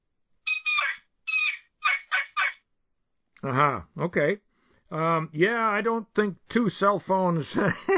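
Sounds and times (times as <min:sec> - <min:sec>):
turkey call on a sassafras rail yelping: 0:00.5 - 0:02.6
speech: 0:03.4 - 0:07.9.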